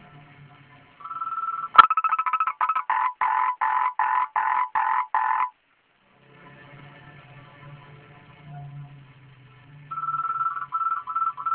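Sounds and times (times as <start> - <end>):
frog croaking: 1.0 - 5.6, 9.9 - 11.5
steady tone: 1.0 - 5.6, 9.9 - 11.5.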